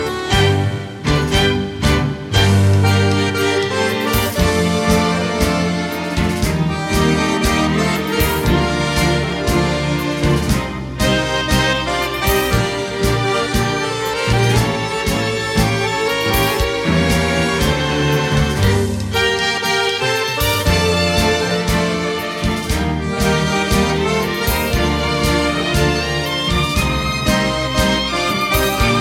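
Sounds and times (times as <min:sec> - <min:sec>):
tango music: 0:00.0 - 0:29.0.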